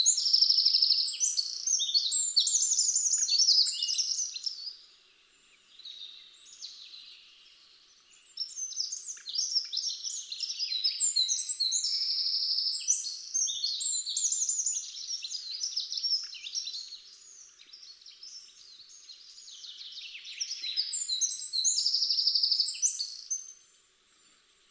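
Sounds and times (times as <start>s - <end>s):
Eurasian wren song: 0.0s - 4.8s, 5.7s - 23.6s
faint hiss: 0.0s - 21.0s, 22.0s - 24.6s.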